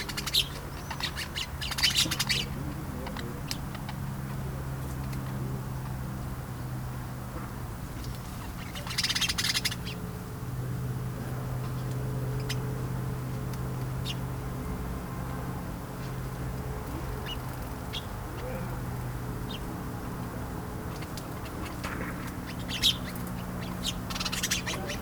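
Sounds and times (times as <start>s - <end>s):
sparrows chattering in their bush at bedtime in a village: 0.0s - 25.0s.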